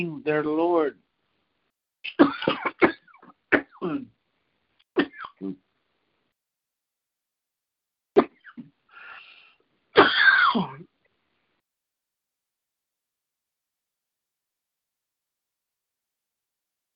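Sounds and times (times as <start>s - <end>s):
speech: 0.0s - 1.0s, 2.0s - 2.9s, 5.4s - 5.6s
person coughing after water went down wrong way: 2.1s - 4.1s, 5.0s - 5.6s, 8.2s - 8.7s, 10.0s - 10.9s
raspy throat-clearing: 2.1s - 4.1s, 5.0s - 5.6s, 8.2s - 8.8s.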